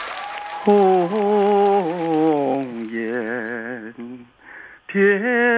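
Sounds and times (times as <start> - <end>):
audience applause: 0.0 - 3.8
speech: 0.6 - 1.4, 5.0 - 5.4.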